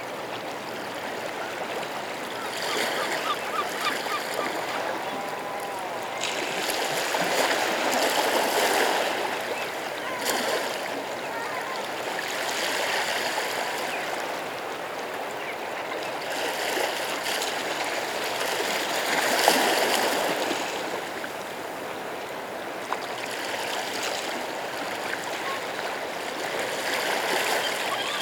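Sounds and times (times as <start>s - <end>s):
coastal nature sounds: 0.0s - 28.2s.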